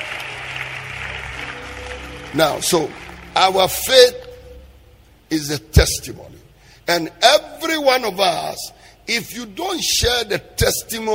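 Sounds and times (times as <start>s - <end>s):
audience clapping: 0.0s - 4.4s
speech: 2.3s - 4.2s, 5.3s - 6.3s, 6.9s - 11.1s.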